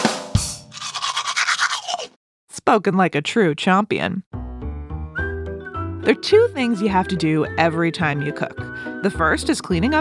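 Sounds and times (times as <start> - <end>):
toothbrush brushing teeth: 0.7 - 2.2
speech: 2.6 - 4.4, 6.1 - 9.9.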